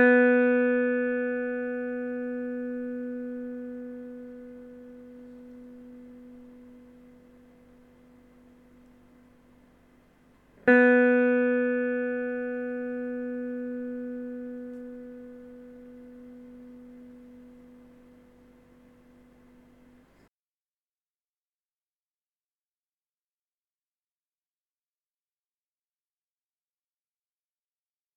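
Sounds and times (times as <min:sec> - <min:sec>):
electric guitar second string B note for tuning: 0:00.0 - 0:09.2, 0:10.6 - 0:19.6.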